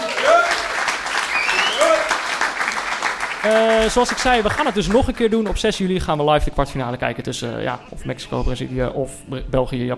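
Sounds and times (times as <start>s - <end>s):
crowd whooping and cheering: 0.0s - 2.5s
audience applause: 0.0s - 5.6s
speech: 3.4s - 9.9s.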